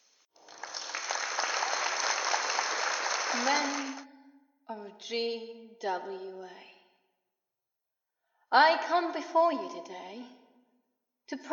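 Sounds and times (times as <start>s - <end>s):
crowd applauding in Madeline Square: 0.4s - 4.0s
speech: 3.4s - 4.0s, 4.7s - 6.7s, 8.5s - 10.4s, 11.3s - 11.5s.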